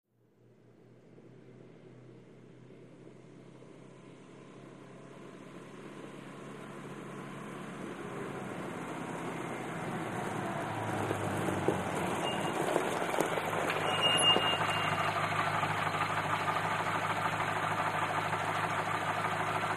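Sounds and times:
antique Buick driving at medium speed on gravel: 0:03.8 - 0:19.7.

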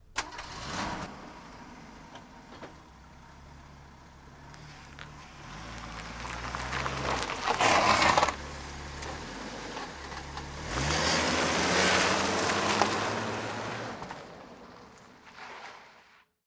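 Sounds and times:
car engine starting: 0:00.0 - 0:15.9.

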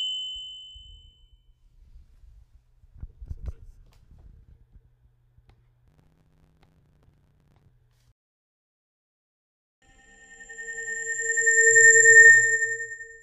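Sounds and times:
old school analog sci-fi ambience: 0:09.8 - 0:13.2.

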